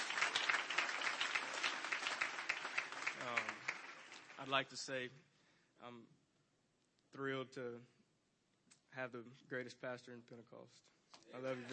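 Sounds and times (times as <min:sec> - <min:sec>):
audience applause: 0:00.0 - 0:04.6, 0:11.4 - 0:11.7
speech: 0:04.4 - 0:06.2, 0:07.1 - 0:08.0, 0:08.9 - 0:11.7.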